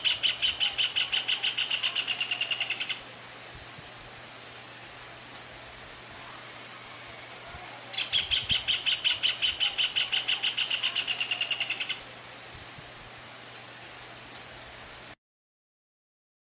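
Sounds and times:
rufous hornero trilling: 0.0s - 3.0s, 7.9s - 12.0s
background hiss: 0.0s - 15.2s.

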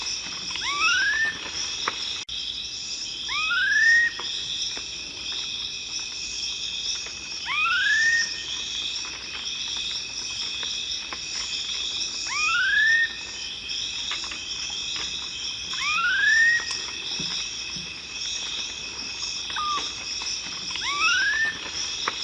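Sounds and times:
shrill unbroken insect hum: 0.0s - 22.2s
black-faced cotinga song of rising whistles: 0.6s - 1.6s, 3.2s - 4.4s, 7.4s - 8.6s, 12.2s - 13.4s, 15.7s - 17.0s, 19.5s - 20.0s, 20.8s - 22.2s.

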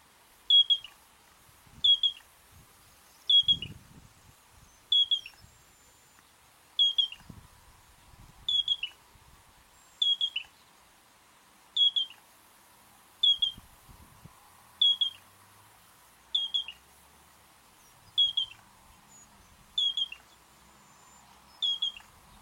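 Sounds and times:
Yellow-breasted Crake giving short high whistled notes: 0.5s - 1.0s, 1.8s - 2.2s, 3.3s - 3.8s, 4.9s - 5.4s, 6.8s - 7.3s, 8.5s - 9.0s, 10.0s - 10.5s, 11.8s - 12.2s, 13.2s - 13.6s, 14.8s - 15.2s, 16.4s - 16.8s, 18.2s - 18.6s, 19.2s - 20.2s, 21.6s - 22.1s.

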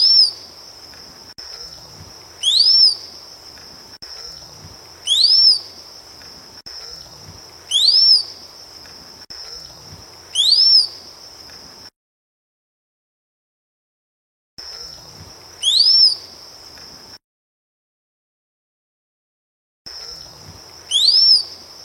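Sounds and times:
rose-collared piha whistling: 0.0s - 0.4s, 2.4s - 3.0s, 5.0s - 5.7s, 7.7s - 8.3s, 10.3s - 11.0s, 15.6s - 16.3s, 20.9s - 21.5s.

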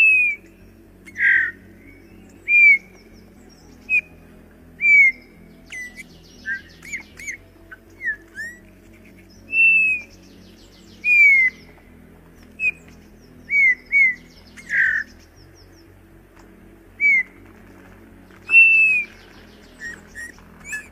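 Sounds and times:
low droning hum: 0.0s - 20.8s
Eurasian bullfinch whistling: 1.1s - 2.9s, 4.8s - 7.4s, 8.0s - 10.2s, 10.9s - 11.7s, 13.5s - 15.2s, 17.0s - 17.4s, 18.5s - 20.8s.

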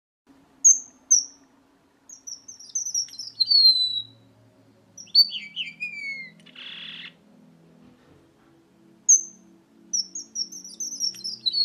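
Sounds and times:
red avadavat singing tinkling notes: 0.6s - 1.5s, 2.1s - 7.5s, 9.0s - 11.6s.

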